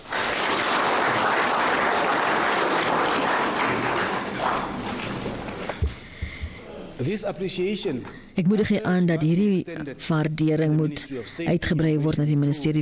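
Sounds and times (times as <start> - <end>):
audience clapping hands: 0.0 - 6.6
speech: 7.1 - 12.8.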